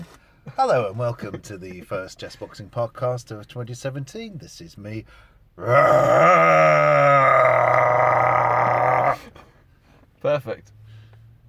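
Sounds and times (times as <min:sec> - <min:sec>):
speech: 0:00.6 - 0:07.4, 0:10.2 - 0:10.8
man's voice imitating a hippo's throaty growl: 0:05.6 - 0:09.3.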